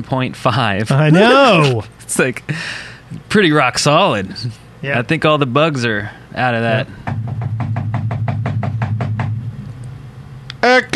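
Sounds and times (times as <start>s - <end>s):
speech: 0.0s - 7.1s, 10.6s - 10.9s
low hum: 6.8s - 10.6s
knocking on a door: 7.0s - 9.5s.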